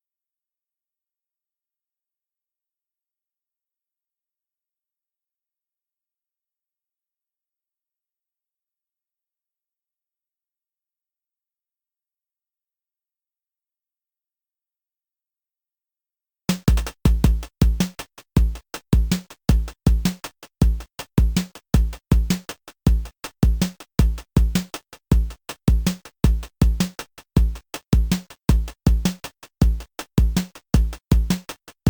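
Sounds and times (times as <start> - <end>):
drums: 16.5 - 31.8.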